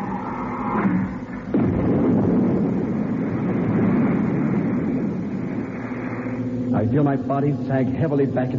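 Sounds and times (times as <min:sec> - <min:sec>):
retro rockets firing: 0:00.0 - 0:06.7
humming tone: 0:00.0 - 0:08.3
speech: 0:06.8 - 0:08.5.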